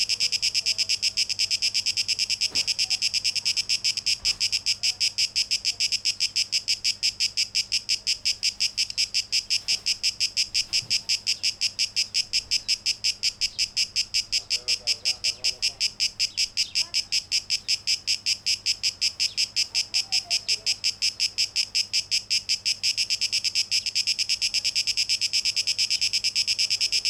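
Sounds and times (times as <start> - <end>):
cicada buzzing in rapid pulses: 0.0 - 27.0
faint low chirping notes of another creature: 8.6 - 17.9.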